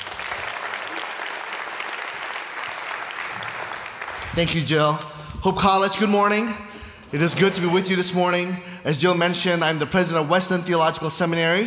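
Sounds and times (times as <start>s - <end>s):
audience applause welcoming a speaker to the stage: 0.0s - 4.8s
speech: 4.4s - 11.6s.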